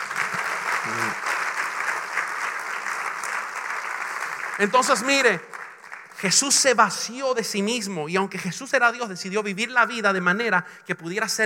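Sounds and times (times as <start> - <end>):
audience applause: 0.0 - 6.2
speech: 0.8 - 1.3, 4.6 - 5.6, 6.2 - 11.4.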